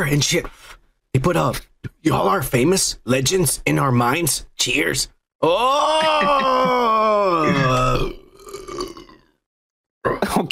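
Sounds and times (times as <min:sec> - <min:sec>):
speech: 0:00.0 - 0:08.2, 0:10.2 - 0:10.5
laughter: 0:05.6 - 0:07.8
burp: 0:07.4 - 0:09.4.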